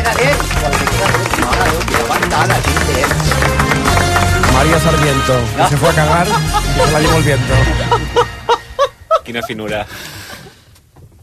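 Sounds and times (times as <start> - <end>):
applause for the RAC1 news service: 0.0 - 7.1
laughter: 4.4 - 10.0
speech: 5.0 - 8.4, 9.3 - 10.2.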